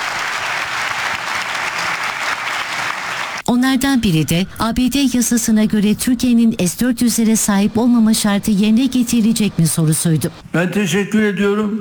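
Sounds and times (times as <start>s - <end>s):
long applause in a press hall: 0.0s - 3.4s
speech: 3.6s - 11.7s.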